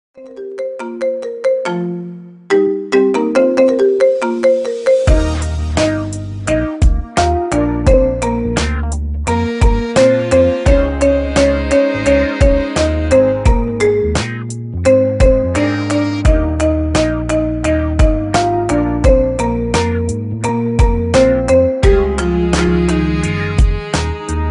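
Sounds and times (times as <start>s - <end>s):
marimba: 0.2s - 24.4s.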